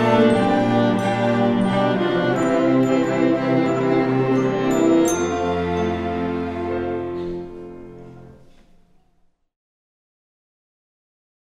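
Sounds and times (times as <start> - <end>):
children's orchestra playing a prelude: 0.0 - 8.6.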